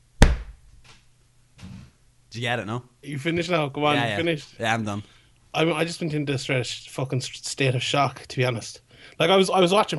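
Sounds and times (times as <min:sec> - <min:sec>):
person slapping chest: 0:00.2 - 0:00.6
speech: 0:02.3 - 0:09.9.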